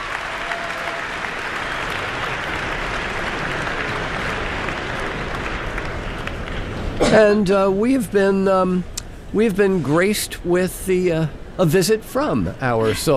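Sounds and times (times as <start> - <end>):
audience applauding at Carnegie Hall: 0.0 - 7.0
speech: 7.1 - 13.1.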